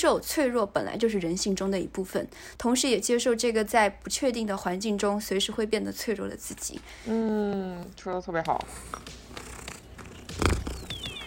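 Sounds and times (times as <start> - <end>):
speech: 0.0 - 9.5
cat purring: 8.6 - 11.2.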